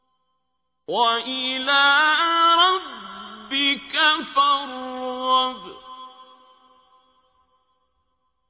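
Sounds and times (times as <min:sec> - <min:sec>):
qari reciting the Quran: 0:00.9 - 0:07.2.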